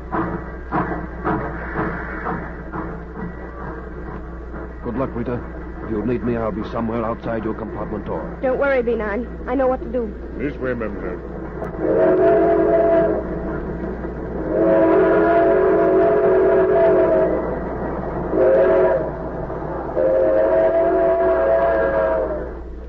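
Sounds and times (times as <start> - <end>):
train rumbling along the tracks at night: 0.0 - 22.8
speech: 5.0 - 12.7
train horn blasts: 11.7 - 13.6, 14.4 - 17.5, 18.3 - 19.2, 20.0 - 22.8.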